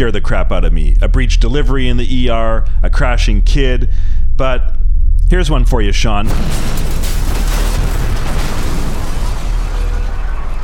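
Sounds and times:
speech: 0.0 - 7.6
bomb explosion sound effect: 6.2 - 10.6.

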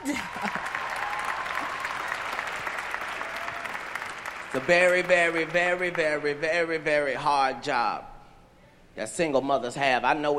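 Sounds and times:
audience applause: 0.0 - 7.1
speech: 4.6 - 8.1, 9.0 - 10.3.

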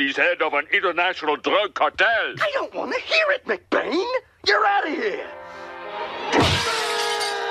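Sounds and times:
speech: 0.0 - 5.6
window glass shattering: 6.4 - 7.4
falling glass shards ringing: 6.6 - 7.4.

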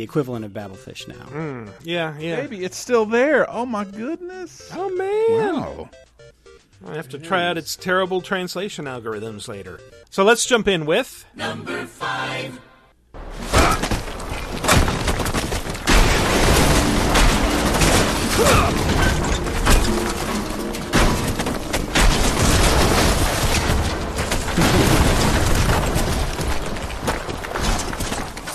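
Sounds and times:
speech: 0.0 - 6.1, 6.8 - 12.7
debris clattering: 13.2 - 28.5
video game sledgehammer smashing: 13.2 - 28.5.

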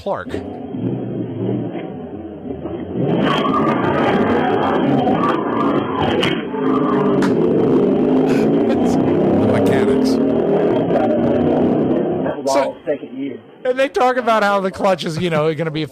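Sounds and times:
speech: 0.0 - 1.1, 12.9 - 15.9
Camaro doing burnouts: 0.3 - 12.5.

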